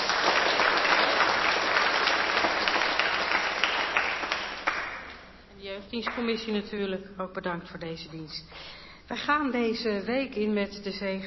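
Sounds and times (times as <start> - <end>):
audience applause for the band: 0.0 - 5.2
speech: 5.9 - 11.2.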